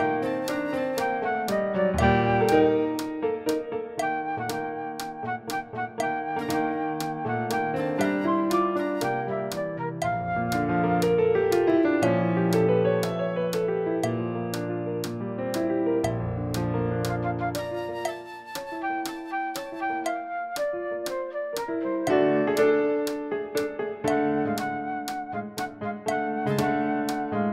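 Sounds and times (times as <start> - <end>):
fast flute backing track: 0.0 - 3.0, 4.0 - 11.4, 17.0 - 23.0, 24.1 - 27.5
fast piano backing track: 0.0 - 27.5.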